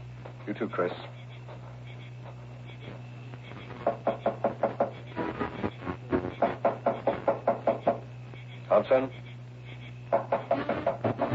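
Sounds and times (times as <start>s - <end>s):
low steady hum: 0.0s - 11.3s
speech: 0.5s - 1.2s, 8.9s - 9.3s
pounding on a door: 3.8s - 5.0s, 6.4s - 8.0s, 10.1s - 11.3s.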